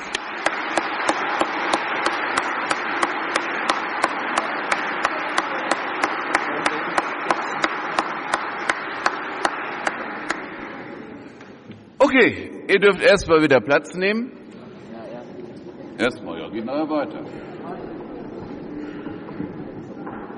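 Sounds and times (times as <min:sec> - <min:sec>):
audience applauding: 0:00.0 - 0:10.8
speech: 0:12.1 - 0:14.4, 0:16.0 - 0:17.6.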